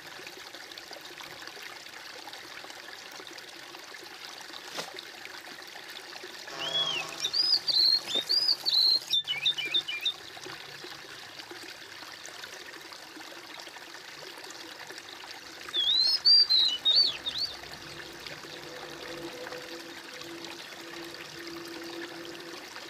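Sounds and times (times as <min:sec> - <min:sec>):
bird singing: 0:06.5 - 0:10.2, 0:15.7 - 0:22.0.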